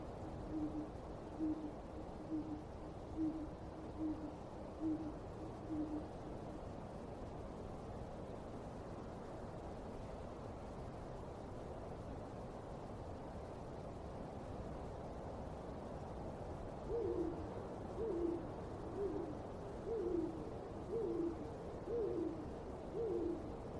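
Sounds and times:
low rumble and hiss: 0.0 - 23.7
owl hooting in a cemetery at night: 0.4 - 6.2, 16.8 - 23.6.

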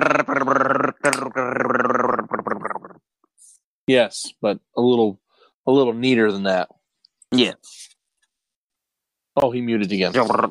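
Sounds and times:
voice imitating choppy breaking-up audio: 0.0 - 3.0, 10.1 - 10.4
speech: 3.9 - 6.7, 7.3 - 7.8, 9.4 - 10.4.

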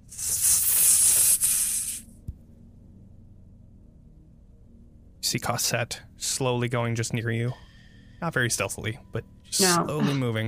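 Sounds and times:
loud hissing: 0.0 - 2.0
speech: 5.3 - 10.4.

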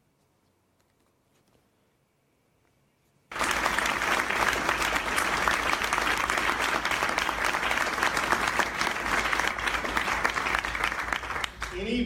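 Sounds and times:
audience applauding: 3.3 - 11.9.

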